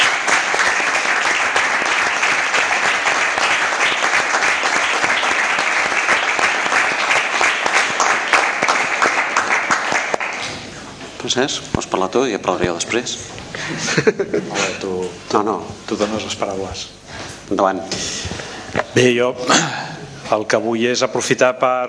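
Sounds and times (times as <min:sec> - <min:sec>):
audience applause: 0:00.0 - 0:10.6
speech: 0:11.3 - 0:18.2, 0:18.9 - 0:21.8
laughter: 0:13.5 - 0:14.9.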